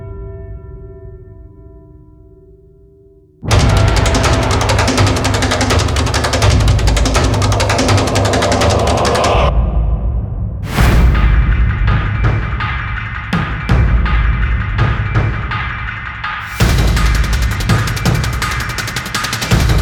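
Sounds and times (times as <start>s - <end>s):
drums: 3.5s - 19.7s.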